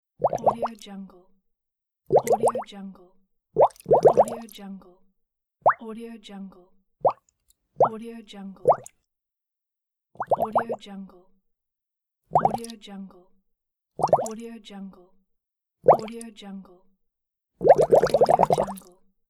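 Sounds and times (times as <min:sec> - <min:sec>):
bubbles: 0:00.2 - 0:00.7, 0:02.1 - 0:02.6, 0:03.6 - 0:04.4, 0:08.6 - 0:08.9, 0:10.2 - 0:10.8, 0:12.3 - 0:12.7, 0:14.0 - 0:14.3, 0:15.9 - 0:16.1, 0:17.6 - 0:19.0.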